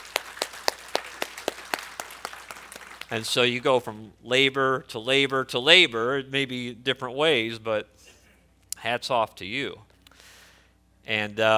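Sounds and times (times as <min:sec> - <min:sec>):
audience hand clapping for great-grandmothers: 0:00.0 - 0:03.3
speech: 0:03.1 - 0:08.1, 0:08.8 - 0:09.9, 0:11.1 - 0:11.5.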